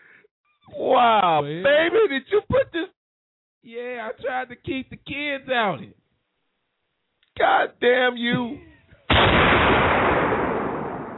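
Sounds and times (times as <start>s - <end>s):
speech: 1.0s - 2.9s, 3.6s - 6.0s, 7.4s - 10.2s
gunshot fired at a ketchup bottle: 9.1s - 11.1s.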